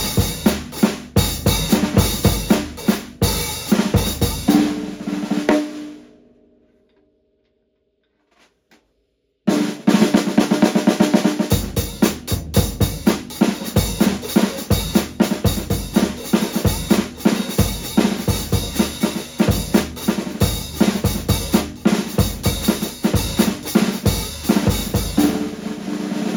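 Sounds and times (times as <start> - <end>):
Angel 5.5 x 14 inch rosewood segment shell snare drum playing: 0.0 - 5.9, 9.5 - 26.3.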